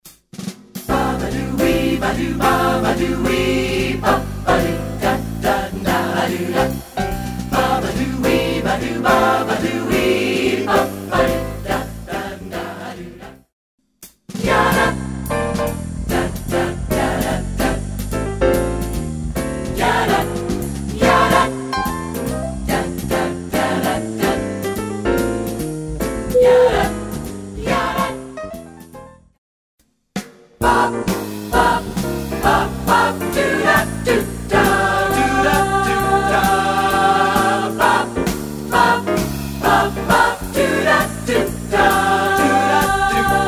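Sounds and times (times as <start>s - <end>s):
vocal jazz: 0.9s - 13.5s, 14.4s - 28.6s, 30.6s - 43.4s.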